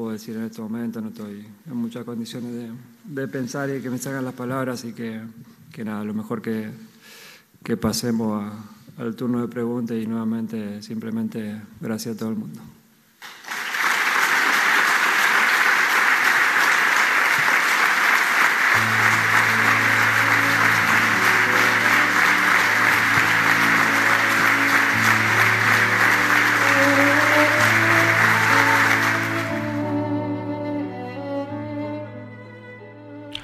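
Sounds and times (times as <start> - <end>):
speech: 0.0 - 12.8
large auditorium audience applauding: 13.2 - 30.2
instrumental music: 18.7 - 33.4.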